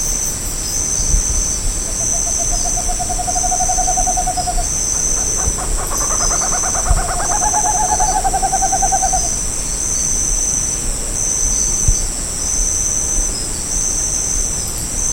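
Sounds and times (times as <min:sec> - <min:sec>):
loud continuous high insect drone: 0:00.0 - 0:15.1
bird call trilled whistled notes: 0:02.0 - 0:09.4.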